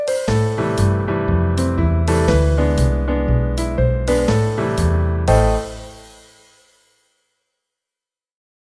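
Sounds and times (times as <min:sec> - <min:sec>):
jazz arrangement: 0:00.0 - 0:06.7.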